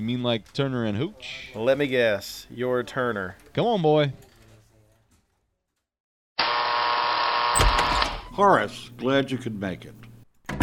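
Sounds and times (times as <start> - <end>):
speech: 0.0 - 4.3, 8.4 - 10.1
electric door buzzer: 6.4 - 8.4.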